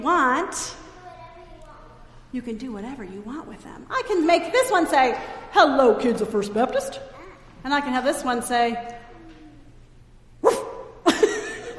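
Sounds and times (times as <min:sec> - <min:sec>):
speech: 0:00.0 - 0:00.8, 0:02.3 - 0:09.0
human voice imitating a dog's bark for a puppet show: 0:10.4 - 0:10.9.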